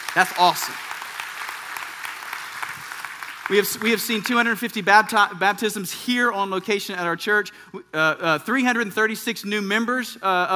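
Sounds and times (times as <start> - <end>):
audience applause: 0.0 - 4.6
speech: 0.2 - 0.9, 3.5 - 10.5.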